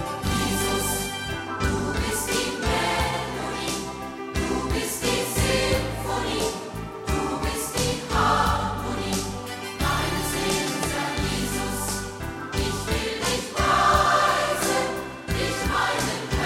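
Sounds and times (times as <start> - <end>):
choir singing: 0.2 - 16.4.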